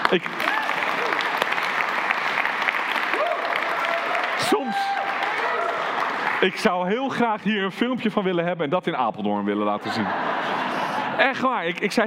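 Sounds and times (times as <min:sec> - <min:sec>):
people applauding: 0:00.0 - 0:07.6
speech: 0:00.1 - 0:00.5, 0:04.5 - 0:05.0, 0:06.4 - 0:10.4, 0:11.2 - 0:12.0
laughter: 0:09.6 - 0:12.0.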